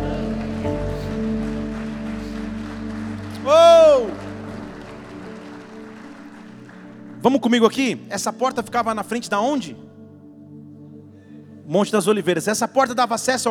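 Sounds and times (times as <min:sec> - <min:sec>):
audience applauding: 0:00.0 - 0:08.8
speech: 0:07.2 - 0:09.9, 0:11.7 - 0:13.4.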